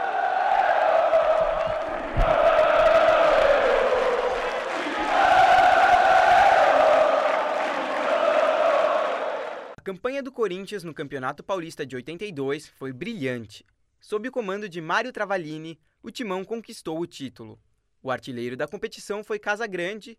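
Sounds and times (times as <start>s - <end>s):
large football crowd roaring and chanting in unison: 0.0s - 9.8s
thump: 2.1s - 3.0s
speech: 9.9s - 20.1s.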